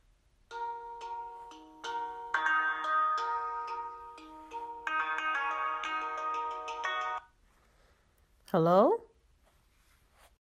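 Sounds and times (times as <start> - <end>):
telephone melodic electronic ringtone: 0.6 - 7.3
speech: 8.5 - 9.0.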